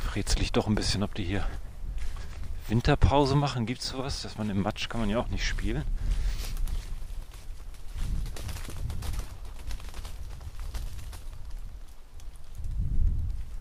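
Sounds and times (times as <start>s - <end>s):
speech: 0.2s - 1.6s, 2.7s - 6.2s
birds flapping out of a tree: 6.1s - 13.6s.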